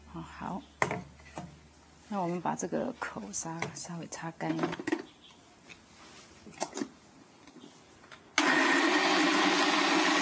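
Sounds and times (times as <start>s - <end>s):
speech: 0.4s - 1.1s, 2.1s - 5.0s
blender blending pumpkin purée: 8.4s - 10.2s.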